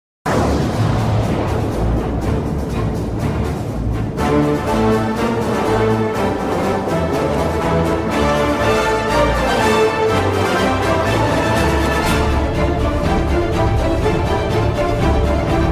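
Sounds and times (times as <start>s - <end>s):
march music: 0.3s - 15.7s.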